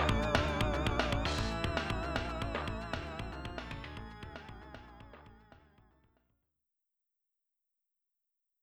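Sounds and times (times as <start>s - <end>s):
FM synth: 0.0s - 5.8s.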